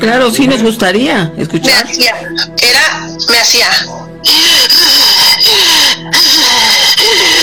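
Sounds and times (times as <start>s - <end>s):
speech: 0.0s - 5.1s
voice imitating harsh raspy breathing: 3.9s - 7.4s.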